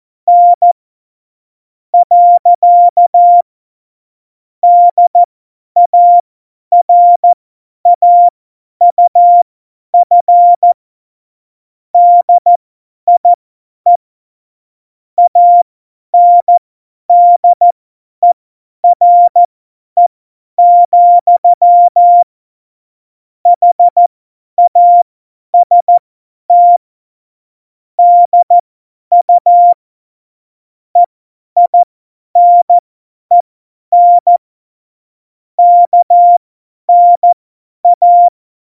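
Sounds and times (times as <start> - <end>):
CW Morse code beeps: 0.3 - 0.8, 2.0 - 3.4, 4.6 - 8.3, 8.9 - 9.4, 10.0 - 10.8, 12.0 - 14.0, 15.2 - 15.6, 16.2 - 19.5, 20.6 - 22.3, 23.6 - 25.0, 25.6 - 26.8, 28.0 - 29.8, 31.0 - 34.4, 35.6 - 38.4.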